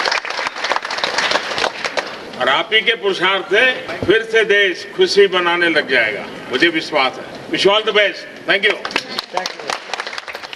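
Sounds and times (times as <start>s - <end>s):
applause: 0.0s - 2.2s, 8.6s - 10.5s
speech: 2.4s - 9.6s.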